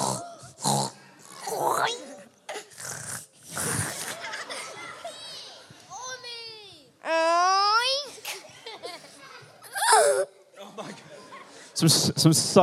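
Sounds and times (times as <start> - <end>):
people imitating pig noises: 0.0 - 4.5, 9.6 - 10.4
people chattering: 0.0 - 12.6
people giggling: 3.7 - 5.4, 8.2 - 10.0, 10.6 - 11.8.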